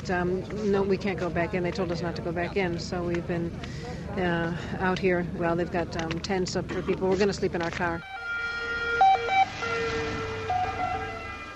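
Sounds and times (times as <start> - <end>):
speech: 0.0 - 8.2
emergency vehicles flying past on the road: 8.0 - 11.5.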